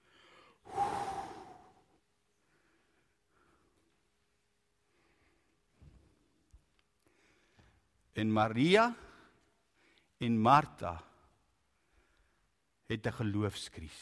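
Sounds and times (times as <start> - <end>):
dying man's last breath in an Easter drama: 0.0 - 2.0
faint quiet breaths: 0.0 - 8.1, 9.0 - 10.2
speech: 8.2 - 9.0, 10.2 - 11.1, 12.9 - 14.0.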